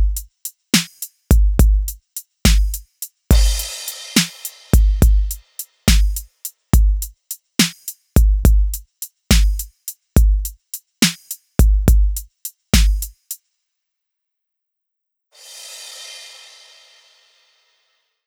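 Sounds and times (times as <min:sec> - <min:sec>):
drum: 0:00.0 - 0:13.4.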